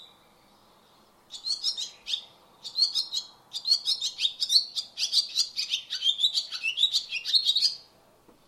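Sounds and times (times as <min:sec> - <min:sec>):
Barn swallow twittering: 0:01.3 - 0:07.8.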